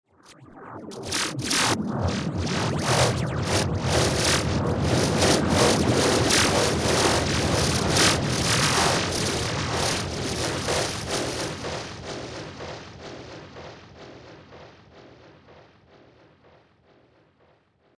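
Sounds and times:
laser shower zaps: 0.9 - 12.5.

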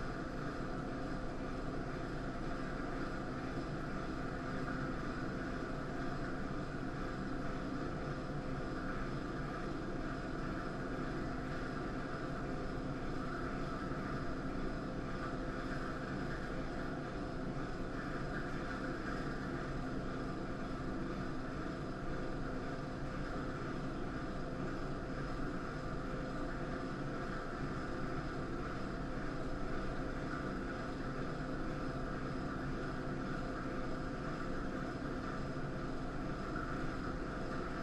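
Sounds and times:
public restroom air conditioner room tone: 0.0 - 37.8.

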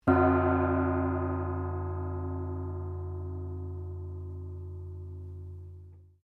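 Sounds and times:
medium Chinese gong ringing softly: 0.0 - 6.1.

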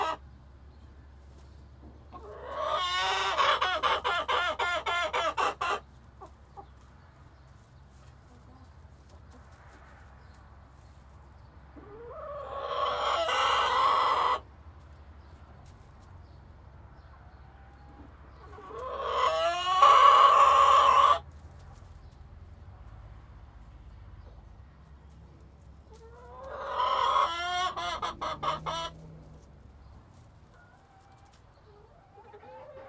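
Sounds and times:
chicken squawking: 0.0 - 0.2, 2.2 - 6.4, 11.8 - 14.4, 18.4 - 21.2, 25.9 - 29.5, 30.6 - 32.8.

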